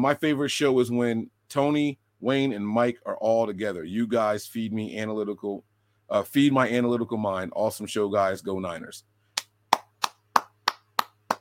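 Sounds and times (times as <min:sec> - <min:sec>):
speech: 0:00.0 - 0:09.1
hand clapping: 0:09.4 - 0:11.3.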